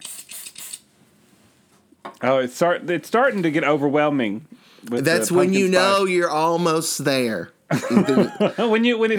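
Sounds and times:
pumpkin spice air freshener spraying: 0:00.0 - 0:00.9
speech: 0:02.0 - 0:09.1
laughter: 0:07.7 - 0:09.1.

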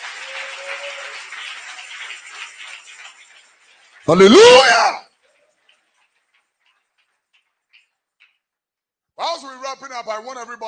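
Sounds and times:
audience clapping hands: 0:00.0 - 0:08.4
speech: 0:04.0 - 0:05.0.

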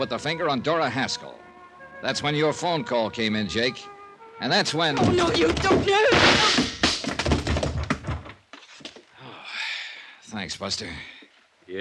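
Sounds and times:
speech: 0:00.0 - 0:01.4, 0:02.0 - 0:06.6, 0:10.4 - 0:11.7
blow knocking a woman down: 0:05.0 - 0:07.2.

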